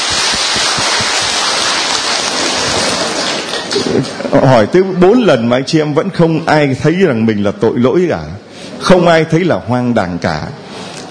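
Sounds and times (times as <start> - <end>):
audience applause: 0.0 - 4.5
speech: 4.3 - 10.6.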